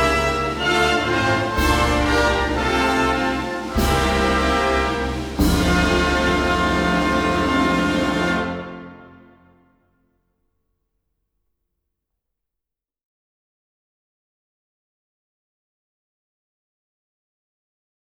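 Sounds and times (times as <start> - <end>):
national anthem: 0.0 - 9.6.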